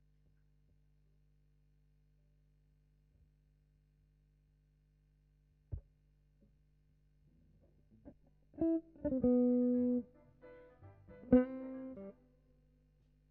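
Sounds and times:
guitar: 7.3s - 12.6s.

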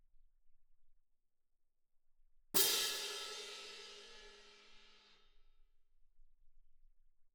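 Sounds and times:
percussion: 2.6s - 5.2s.

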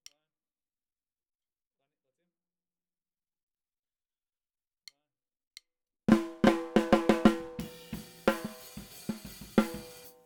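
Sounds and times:
snare drum: 6.1s - 10.2s.

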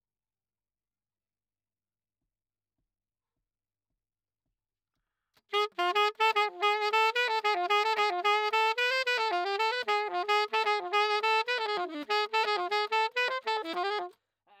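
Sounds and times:
saxophone: 5.5s - 14.2s.

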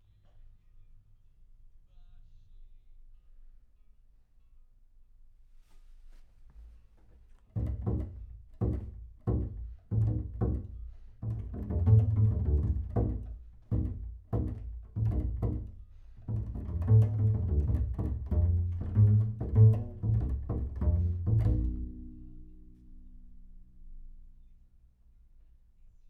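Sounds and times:
bass sound: 7.6s - 24.6s.

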